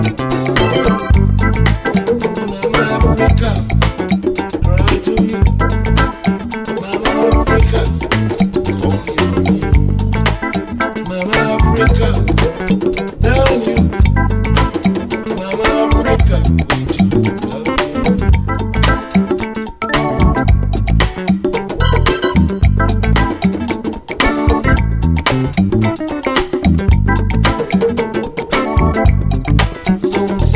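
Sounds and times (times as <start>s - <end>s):
African band: 0.0s - 30.5s.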